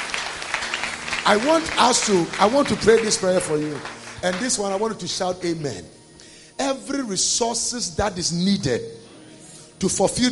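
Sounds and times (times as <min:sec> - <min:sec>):
audience applause: 0:00.0 - 0:05.1
speech: 0:01.3 - 0:06.0, 0:06.6 - 0:09.1, 0:09.8 - 0:10.2.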